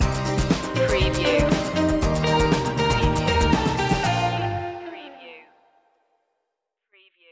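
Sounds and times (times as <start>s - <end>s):
music stinger: 0.0s - 4.9s.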